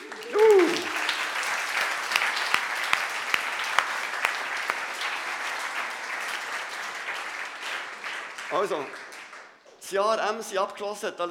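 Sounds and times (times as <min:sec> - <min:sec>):
short strong audience applause: 0:00.0 - 0:09.6
speech: 0:08.6 - 0:09.0, 0:09.8 - 0:11.2.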